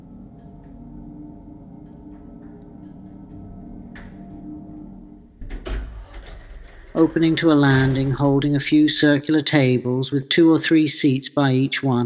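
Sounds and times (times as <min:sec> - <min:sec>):
elevator rising with a steady low hum: 0:00.0 - 0:09.8
faint elevator ticks and clicks: 0:01.8 - 0:04.5
elevator clunk and rattle: 0:05.4 - 0:08.7
speech: 0:07.0 - 0:12.0.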